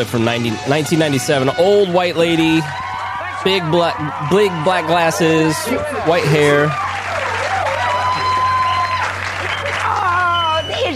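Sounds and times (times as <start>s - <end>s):
speech: 0.0s - 2.8s, 3.4s - 6.8s
studio audience applauding: 0.0s - 10.9s
studio audience whoops and whistles: 7.5s - 10.9s.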